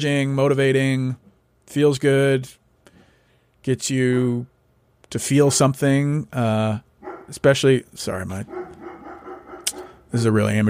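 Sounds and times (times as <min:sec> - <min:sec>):
speech: 0:00.0 - 0:02.6, 0:03.6 - 0:04.5, 0:05.1 - 0:08.7, 0:10.1 - 0:10.6
quiet rough sounds: 0:06.7 - 0:10.6
hounds barking: 0:07.0 - 0:07.4, 0:08.4 - 0:10.1.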